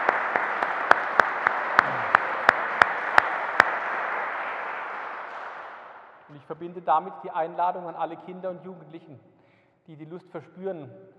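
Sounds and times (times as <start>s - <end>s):
sharp claps at a German community gathering: 0.0s - 6.2s
speech: 6.5s - 9.3s, 9.9s - 11.1s.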